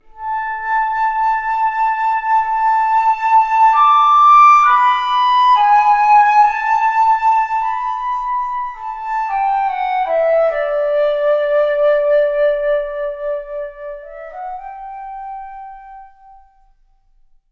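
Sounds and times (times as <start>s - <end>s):
flute: 0.0s - 16.9s.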